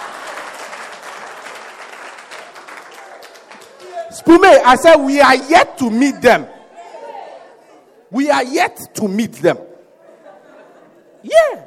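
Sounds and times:
audience clapping: 0:00.0 - 0:04.1
speech: 0:04.1 - 0:06.6, 0:08.1 - 0:09.7
laughter: 0:09.9 - 0:11.6.

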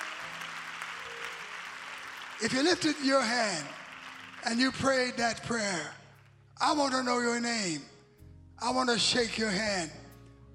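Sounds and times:
audience clapping hands: 0:00.0 - 0:05.9
speech: 0:02.4 - 0:03.8, 0:04.4 - 0:06.0, 0:06.6 - 0:07.9, 0:08.6 - 0:10.0.

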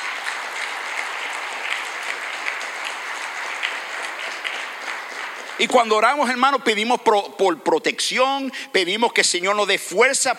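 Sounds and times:
loud applause: 0:00.0 - 0:07.0
speech: 0:05.6 - 0:10.3.

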